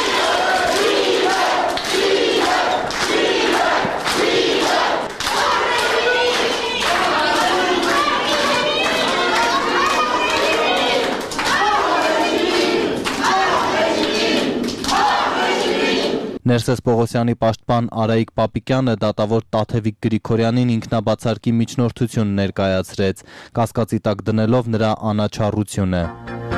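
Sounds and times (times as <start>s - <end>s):
supporters applauding detainees arriving at a court hearing: 0.0s - 16.1s
speech: 16.6s - 26.4s.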